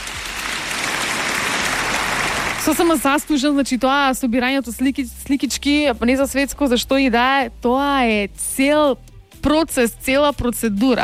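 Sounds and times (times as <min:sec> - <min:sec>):
applause: 0:00.0 - 0:03.2
speech: 0:02.7 - 0:11.0.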